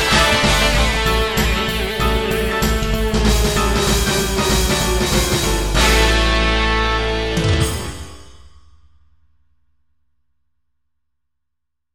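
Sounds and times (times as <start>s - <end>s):
hyper rock and pop groove: 0.0s - 8.2s.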